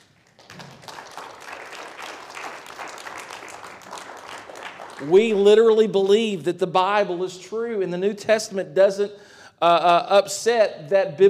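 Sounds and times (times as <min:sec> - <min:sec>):
church audience clapping hands: 0:00.0 - 0:05.8
speech: 0:05.0 - 0:11.2.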